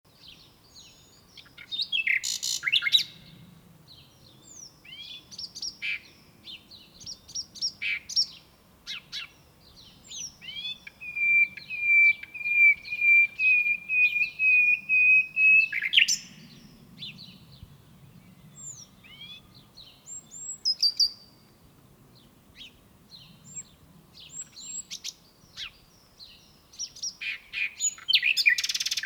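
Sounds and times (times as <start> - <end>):
common nightingale singing: 0.2 - 3.4, 4.0 - 21.4, 22.6 - 29.0.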